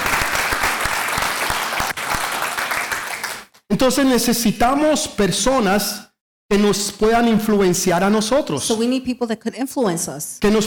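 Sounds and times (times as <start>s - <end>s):
audience applause: 0.0s - 3.6s
speech: 3.8s - 10.6s.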